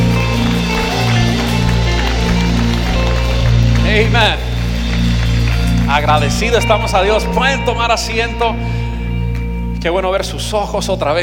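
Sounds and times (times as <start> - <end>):
audience applause: 0.0 - 7.1
speech: 4.0 - 4.4, 5.9 - 8.8, 9.8 - 11.2.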